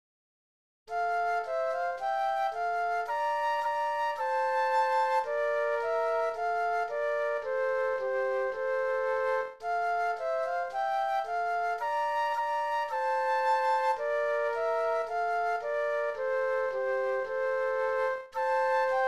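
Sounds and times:
flute duet: 0:00.9 - 0:19.0.

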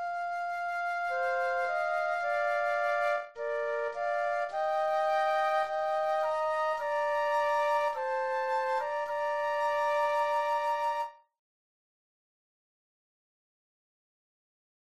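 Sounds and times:
flute duet: 0:00.0 - 0:11.3.

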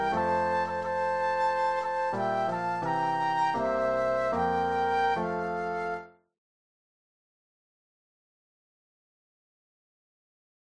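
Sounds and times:
Christmas flute duet: 0:00.0 - 0:06.3
Christmas piano: 0:00.0 - 0:06.3.

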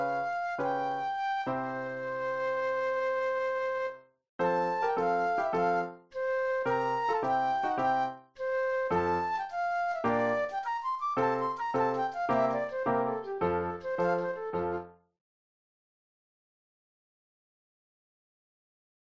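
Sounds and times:
flute solo: 0:00.0 - 0:14.9.

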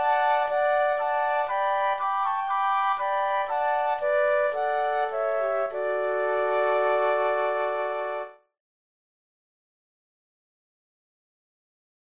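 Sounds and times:
flute trio playing: 0:00.0 - 0:08.5.

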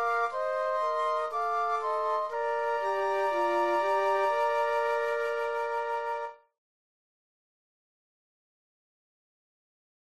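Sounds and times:
flute trio playing: 0:00.0 - 0:06.5.

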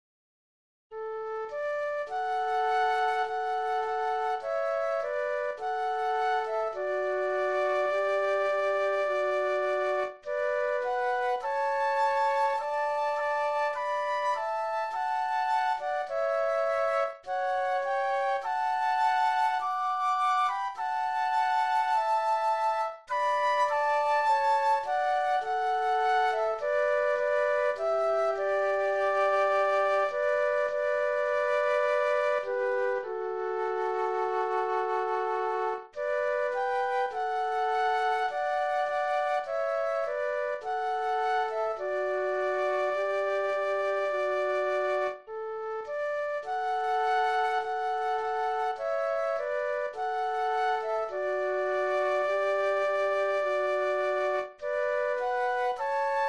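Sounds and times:
flute duet: 0:00.9 - 0:56.2.

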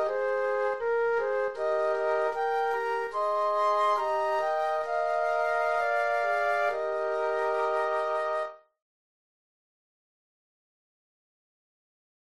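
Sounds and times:
flute trio: 0:00.0 - 0:08.7.

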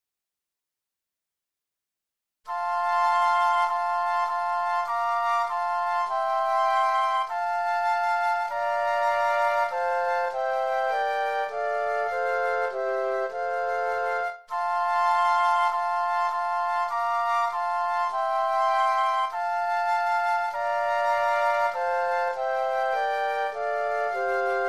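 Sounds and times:
flute trio playing: 0:02.5 - 0:24.6.

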